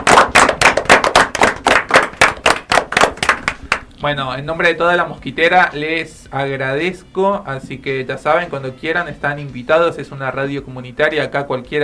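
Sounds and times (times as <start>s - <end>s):
small group clapping: 0.0s - 3.9s
speech: 4.0s - 11.8s.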